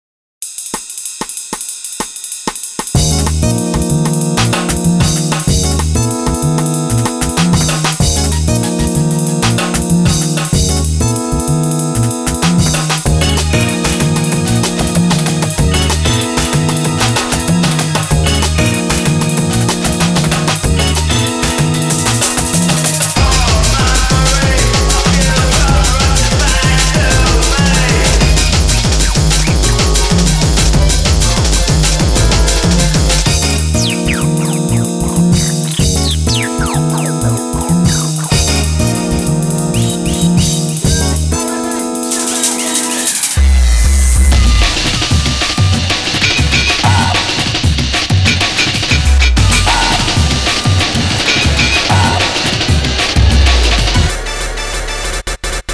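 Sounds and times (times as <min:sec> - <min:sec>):
jazzy groove: 0:02.8 - 0:43.4, 0:44.3 - 0:55.7.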